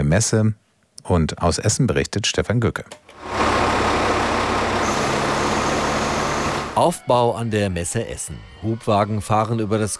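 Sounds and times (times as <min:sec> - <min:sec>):
speech: 0:00.0 - 0:03.4, 0:06.8 - 0:09.9
camouflage military truck driving into an exhibition hall: 0:03.2 - 0:06.8.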